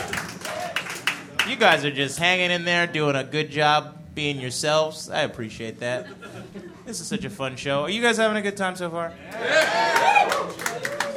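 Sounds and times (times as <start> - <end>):
audience clapping: 0.0 - 1.9, 9.3 - 11.1
speech: 1.5 - 10.9
laughter: 5.9 - 7.1.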